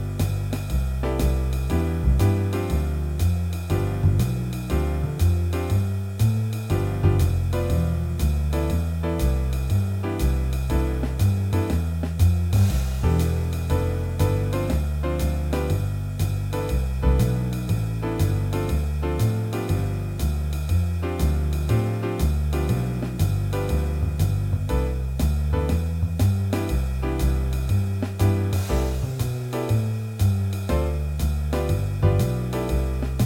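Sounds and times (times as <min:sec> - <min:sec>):
musical warm-ups in C major: 0:00.0 - 0:33.2.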